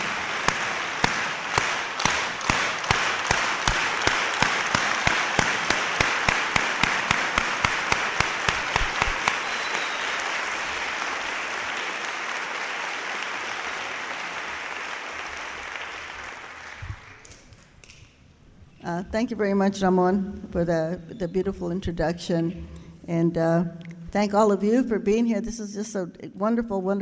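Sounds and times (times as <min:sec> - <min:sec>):
audience rhythmic farm worker clap: 0:00.0 - 0:17.9
speech: 0:19.1 - 0:27.0.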